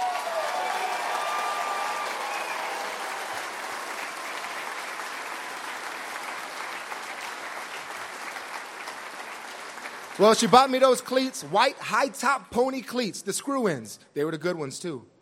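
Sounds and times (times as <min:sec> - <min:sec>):
audience applause: 0:00.0 - 0:11.7
speech: 0:10.2 - 0:15.1.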